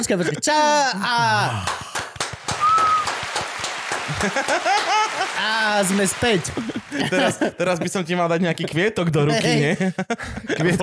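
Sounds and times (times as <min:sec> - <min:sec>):
speech: 0:00.0 - 0:01.8, 0:04.1 - 0:10.8
applause: 0:01.5 - 0:07.6
laughter: 0:02.5 - 0:08.8, 0:09.4 - 0:10.8.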